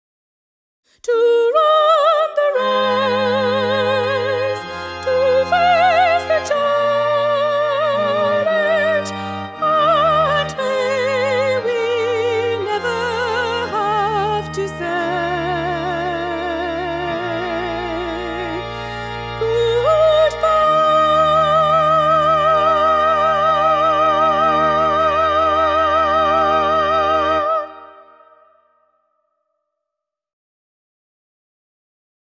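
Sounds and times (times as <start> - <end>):
soprano singing: 1.0 - 28.5.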